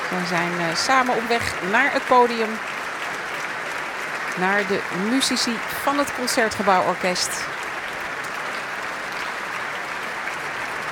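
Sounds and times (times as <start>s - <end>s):
large concert audience applause: 0.0s - 10.8s
speech: 0.1s - 2.7s, 4.4s - 7.6s.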